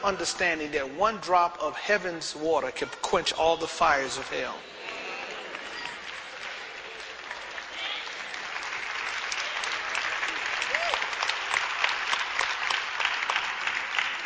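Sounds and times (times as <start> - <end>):
speech: 0.0 - 4.9
audience clapping: 4.4 - 14.2.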